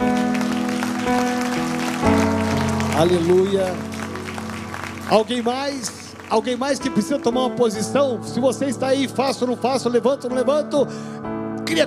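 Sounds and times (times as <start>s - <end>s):
audience clapping: 0.0s - 7.9s
keyboard chords: 0.0s - 11.8s
speech: 3.0s - 4.0s, 5.1s - 11.8s.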